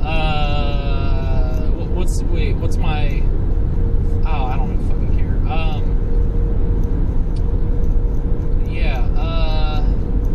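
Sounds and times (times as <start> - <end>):
person talking: 0.0 - 3.3, 4.2 - 5.9, 8.7 - 10.0
steady low road and engine rumble of a car driven on windy roads: 0.0 - 10.3.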